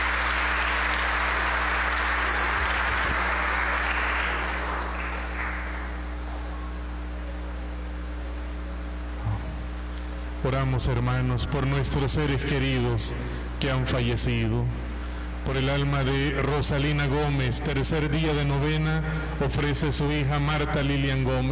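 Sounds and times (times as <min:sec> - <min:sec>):
audience applauding: 0:00.0 - 0:06.5
low steady hum in a large room: 0:00.0 - 0:21.5
speech: 0:10.5 - 0:21.5.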